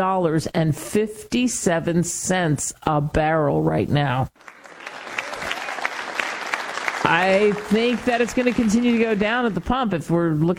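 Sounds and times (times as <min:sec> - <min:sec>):
speech: 0:00.0 - 0:04.6, 0:07.0 - 0:10.5
crowd applause: 0:04.4 - 0:09.5.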